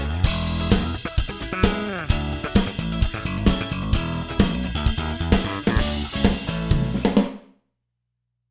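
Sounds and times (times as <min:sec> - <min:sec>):
Ensoniq DP Pro band drums in a medium room: 0:00.0 - 0:07.5.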